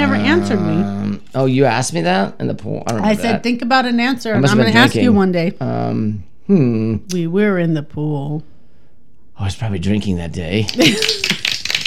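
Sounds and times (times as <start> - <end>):
speech: 0.0 - 8.5, 9.4 - 11.4
hand clapping: 10.6 - 11.8.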